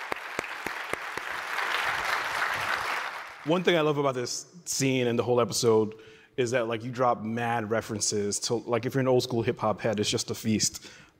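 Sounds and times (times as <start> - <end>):
applause: 0.0 - 3.8
speech: 3.4 - 11.1.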